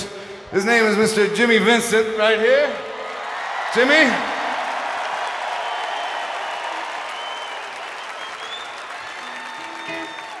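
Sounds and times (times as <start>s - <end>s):
speech: 0.5s - 2.9s, 3.7s - 4.3s
audience applause: 2.6s - 10.3s.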